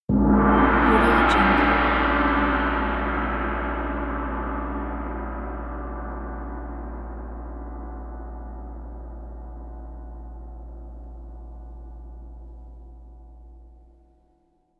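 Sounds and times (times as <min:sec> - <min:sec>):
gong: 0:00.1 - 0:13.8.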